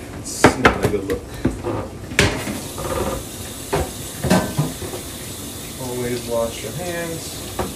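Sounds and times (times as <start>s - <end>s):
speech: 0.2s - 2.1s, 6.0s - 7.7s
chicken frying in hot oil: 2.5s - 7.7s.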